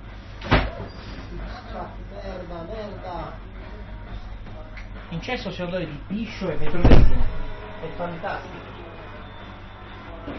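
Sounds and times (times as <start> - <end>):
steady low hum: 0.0 - 10.3
speech: 5.1 - 8.7
door swinging open: 6.6 - 7.4.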